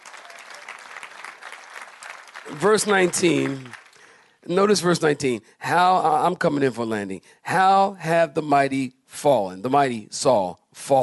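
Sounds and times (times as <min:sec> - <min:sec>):
audience clapping hands: 0:00.0 - 0:04.4
speech: 0:02.4 - 0:03.8, 0:04.5 - 0:11.0.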